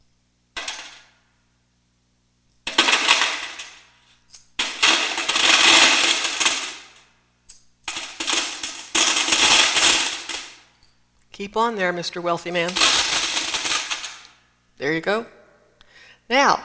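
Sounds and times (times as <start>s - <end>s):
coins clattering into brass trumpet boxes: 0.6s - 1.1s, 2.6s - 7.1s, 7.9s - 10.7s, 12.5s - 14.4s
speech: 11.4s - 13.0s, 14.8s - 15.4s, 16.3s - 16.6s.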